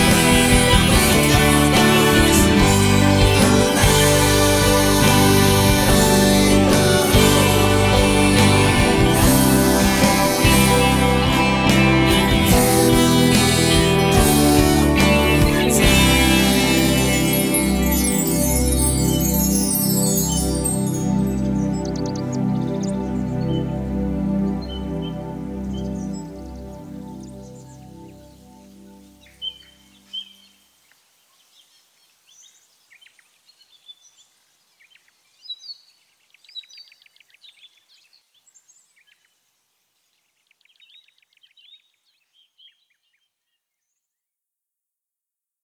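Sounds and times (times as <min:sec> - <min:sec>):
karaoke ambience: 0:00.0 - 0:27.0.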